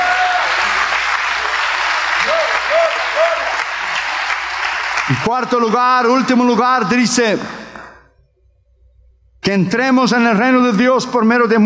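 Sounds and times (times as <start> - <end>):
sustained crowd applause: 0.0 - 6.2
speech: 5.1 - 7.6, 9.5 - 11.6.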